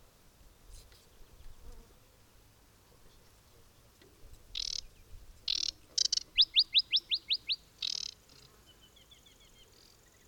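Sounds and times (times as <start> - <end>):
aquatic warbler singing: 4.5 - 10.2.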